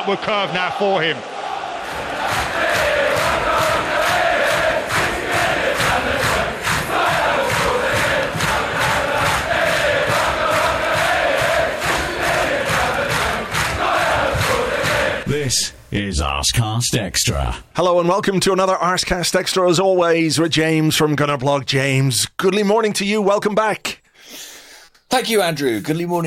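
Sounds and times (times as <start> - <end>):
speech: 0.0 - 1.3, 15.5 - 24.0, 25.1 - 26.2
football crowd cheering an Arsenal player after a won match: 0.0 - 15.4.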